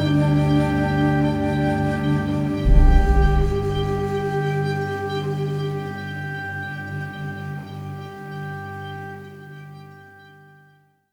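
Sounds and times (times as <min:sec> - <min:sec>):
Japanese ethnic trailer ident music: 0:00.0 - 0:08.0.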